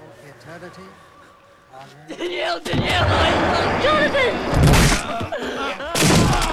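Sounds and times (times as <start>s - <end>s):
laughter: 0.0s - 6.5s
speech: 0.5s - 1.1s, 1.7s - 6.0s
body knocked into open grave, thudding down: 2.6s - 6.5s
rough scraping crash of impact: 2.6s - 6.5s.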